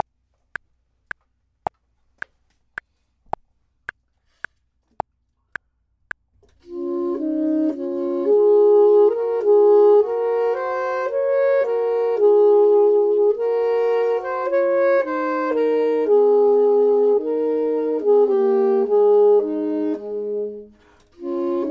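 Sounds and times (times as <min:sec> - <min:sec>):
clarinet: 0:06.6 - 0:21.6
saxophone: 0:06.6 - 0:21.6.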